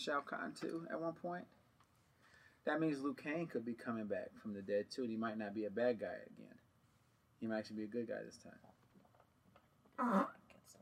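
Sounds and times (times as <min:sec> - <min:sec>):
speech: 0:00.0 - 0:01.6, 0:02.6 - 0:06.6, 0:07.4 - 0:08.8, 0:10.0 - 0:10.8
fart: 0:10.0 - 0:10.4.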